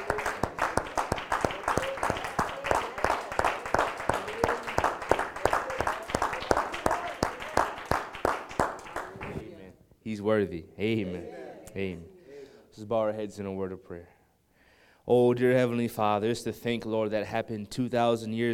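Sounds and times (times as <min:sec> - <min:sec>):
audience hand clap of praise: 0:00.0 - 0:09.4
speech: 0:10.3 - 0:12.2, 0:12.8 - 0:14.2, 0:15.1 - 0:18.5.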